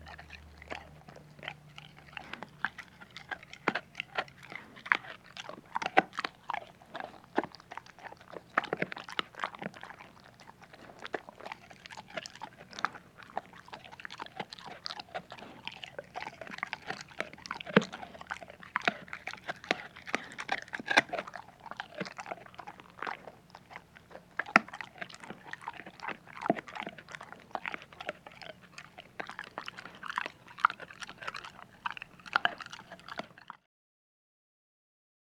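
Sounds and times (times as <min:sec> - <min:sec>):
dog crunching dry food: 0:00.0 - 0:33.6.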